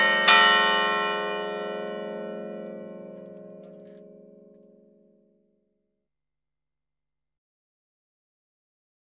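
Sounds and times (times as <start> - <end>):
bells ringing: 0.0 - 5.0.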